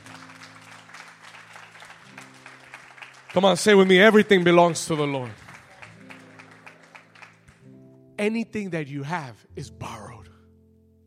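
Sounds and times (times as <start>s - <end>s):
audience applauding with hand claps: 0.0s - 7.8s
speech: 3.3s - 5.4s, 8.2s - 10.0s.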